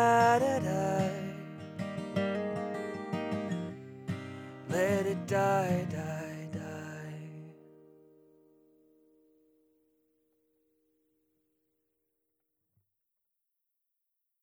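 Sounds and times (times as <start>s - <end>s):
music recorded on a USB instrument microphone: 0.0s - 11.0s.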